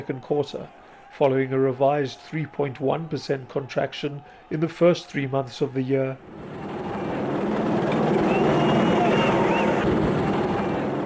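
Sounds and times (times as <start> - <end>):
speech: 0.0 - 6.6
police helicopters hovering over the city: 6.2 - 11.0.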